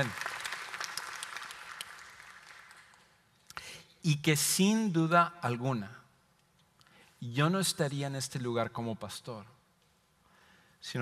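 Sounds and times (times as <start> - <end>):
speech: 0.0 - 0.2, 4.0 - 6.0, 7.2 - 9.6, 10.8 - 10.9
audience applause: 0.0 - 3.1.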